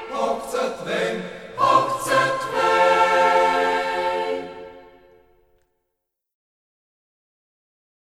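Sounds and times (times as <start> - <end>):
choir in Reußmarkt: 0.0 - 5.5.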